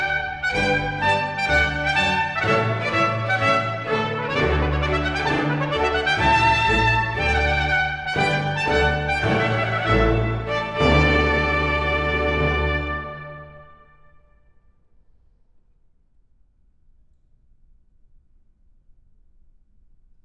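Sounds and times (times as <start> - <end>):
prelude for strings: 0.0 - 14.0.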